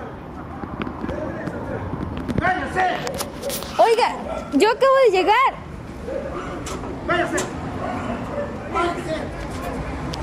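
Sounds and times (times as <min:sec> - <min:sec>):
crowd chatter: 0:00.0 - 0:10.2
dog barking: 0:03.0 - 0:04.6, 0:06.0 - 0:06.6
speech: 0:03.1 - 0:05.6, 0:07.1 - 0:07.5.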